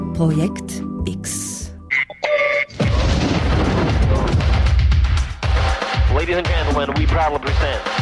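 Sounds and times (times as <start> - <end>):
speech: 0.2 - 1.7, 6.3 - 8.0
explosion sound effect: 2.7 - 5.7.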